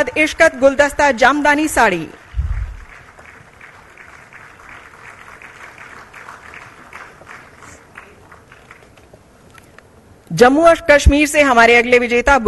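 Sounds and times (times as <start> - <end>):
speech: 0.0 - 2.2, 10.4 - 12.4
audience applause: 2.2 - 9.1.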